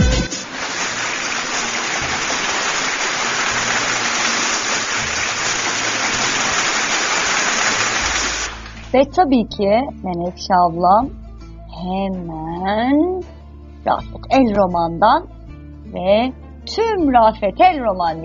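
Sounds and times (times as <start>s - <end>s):
applause: 0.0s - 8.9s
speech: 9.0s - 11.2s, 11.8s - 18.2s.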